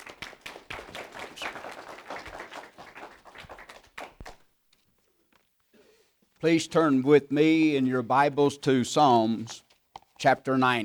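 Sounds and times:
audience applause welcoming a guest preacher to the pulpit: 0:00.0 - 0:04.4
speech: 0:06.4 - 0:09.6, 0:10.2 - 0:10.8.

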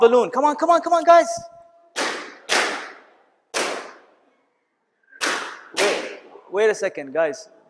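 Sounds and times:
speech: 0:00.0 - 0:01.6, 0:06.5 - 0:07.6
balloons popping: 0:01.9 - 0:04.2, 0:05.1 - 0:06.4.

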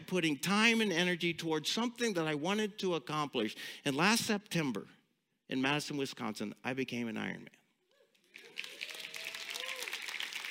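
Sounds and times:
speech: 0:00.1 - 0:07.6
whoops and cheers: 0:07.9 - 0:10.4
audience applause: 0:08.3 - 0:10.4.

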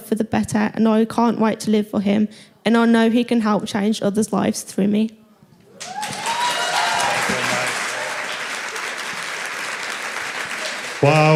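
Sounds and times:
speech: 0:00.1 - 0:05.2, 0:11.0 - 0:11.3
faint cheers: 0:05.7 - 0:08.5
audience applause: 0:05.8 - 0:11.3.

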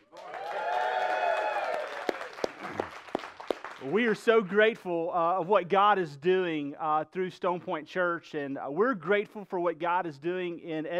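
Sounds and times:
church congregation cheering with raised voices: 0:00.0 - 0:04.1
speech: 0:03.8 - 0:10.9.

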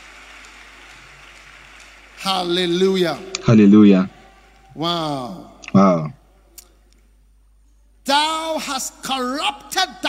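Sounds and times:
children applauding: 0:00.0 - 0:03.2
speech: 0:02.2 - 0:04.2, 0:04.8 - 0:06.1, 0:08.1 - 0:10.0.

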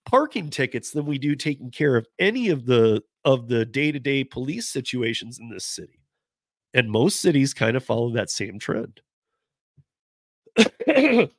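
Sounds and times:
speech: 0:00.1 - 0:06.0, 0:06.7 - 0:09.1, 0:10.6 - 0:11.3
person coughing: 0:10.6 - 0:11.3.

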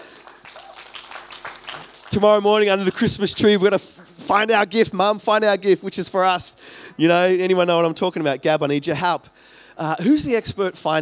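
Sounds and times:
audience applause: 0:00.0 - 0:03.4
speech: 0:02.1 - 0:10.9.

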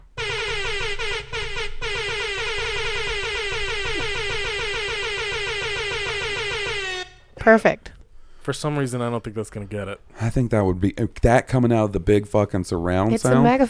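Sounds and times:
loud buzzing vuvuzela-like horn blast: 0:00.2 - 0:07.3
speech: 0:07.4 - 0:07.9, 0:08.5 - 0:13.6.

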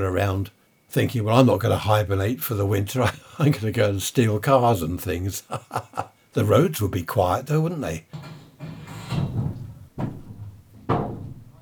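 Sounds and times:
speech: 0:00.0 - 0:08.4
laughter: 0:03.0 - 0:03.8, 0:05.3 - 0:06.2
scaffolding being put up outside a house: 0:08.1 - 0:11.6.

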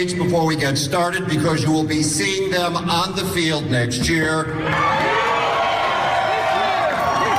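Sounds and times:
speech: 0:00.0 - 0:05.3
audience booing at a stadium event: 0:04.6 - 0:07.3.

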